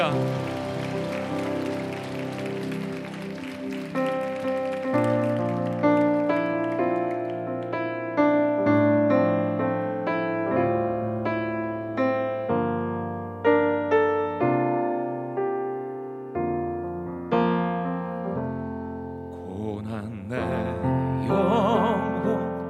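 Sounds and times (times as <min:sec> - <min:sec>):
audience applause: 0:00.0 - 0:08.1
keyboard chords and music: 0:00.0 - 0:22.6.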